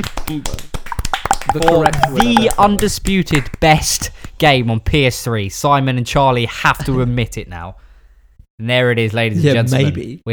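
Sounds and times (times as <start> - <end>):
speech: 0.0 - 0.6, 1.5 - 7.8, 8.6 - 10.3
small group clapping: 0.0 - 4.4.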